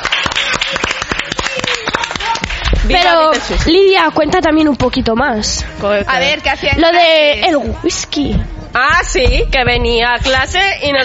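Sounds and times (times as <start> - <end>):
applause: 0.0 - 3.4
speech: 2.9 - 11.0.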